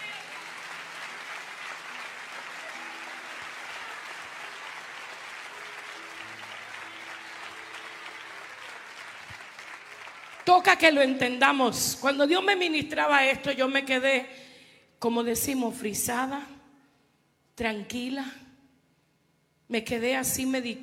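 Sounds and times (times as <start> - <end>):
audience applause: 0.0 - 10.7
speech: 10.5 - 16.5, 17.6 - 18.4, 19.7 - 20.8.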